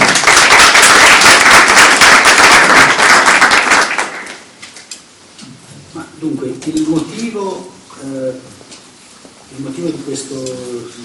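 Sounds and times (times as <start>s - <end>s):
audience applause: 0.0s - 4.5s
speech: 6.2s - 8.5s, 9.5s - 11.0s.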